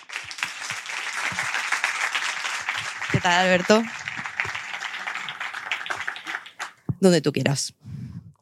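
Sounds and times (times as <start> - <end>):
audience applauding: 0.0 - 6.8
speech: 3.2 - 4.0, 7.0 - 7.9.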